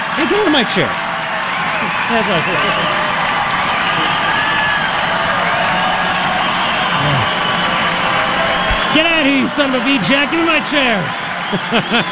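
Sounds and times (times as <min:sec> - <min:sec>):
crowd cheering and applauding: 0:00.0 - 0:12.0
speech: 0:00.2 - 0:01.0, 0:02.1 - 0:03.0, 0:08.9 - 0:12.0
laughter: 0:01.8 - 0:03.3, 0:07.0 - 0:07.5, 0:08.8 - 0:12.0.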